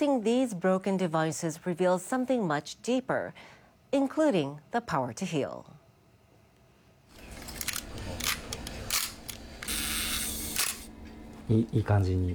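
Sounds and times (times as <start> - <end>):
speech: 0.0 - 5.8, 11.5 - 12.3
film camera shutter clicks in a Tokyo repair workshop: 7.4 - 10.9.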